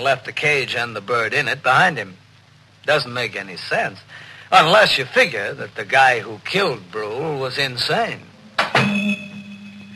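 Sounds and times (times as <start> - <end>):
speech: 0.0 - 2.2, 2.8 - 9.2
low resonant hum: 8.3 - 9.9
faint high ringing tones: 8.4 - 9.9
door slamming shut: 8.6 - 9.2.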